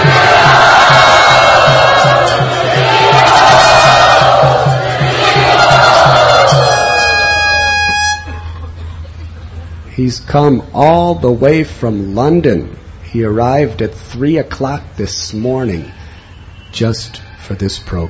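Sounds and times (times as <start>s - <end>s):
audience cheering and shouting to welcome Devamrita Swami in Pune: 0.0s - 7.7s
low rhythmic pulse: 0.0s - 14.2s
speech: 10.0s - 16.0s, 16.8s - 18.0s.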